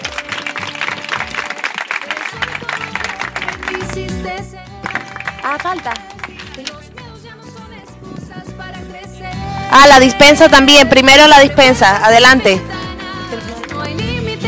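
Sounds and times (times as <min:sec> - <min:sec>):
audience applause: 0:00.0 - 0:06.8
speech: 0:05.4 - 0:06.8, 0:09.7 - 0:12.8.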